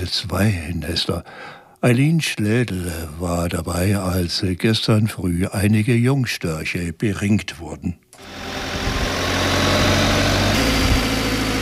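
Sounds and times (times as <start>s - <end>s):
speech: 0.0s - 8.8s
aerial lift truck engine running: 8.2s - 11.6s.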